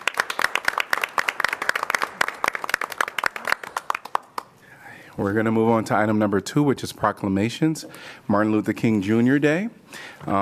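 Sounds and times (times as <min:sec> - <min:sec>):
round of applause: 0:00.0 - 0:04.6
speech: 0:05.2 - 0:10.4.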